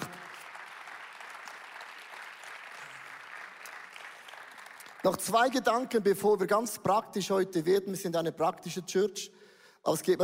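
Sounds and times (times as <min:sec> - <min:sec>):
audience applause: 0:00.0 - 0:05.5
speech: 0:05.0 - 0:10.2.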